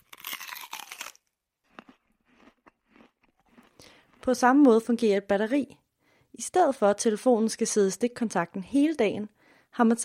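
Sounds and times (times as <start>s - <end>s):
crunchy chewing of a packed lunch: 0.0s - 4.3s
speech: 4.2s - 5.8s, 6.4s - 10.0s.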